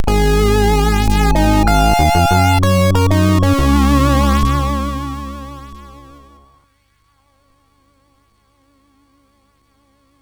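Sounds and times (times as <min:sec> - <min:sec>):
game music on MOS6581R4 chip: 0:00.0 - 0:06.4.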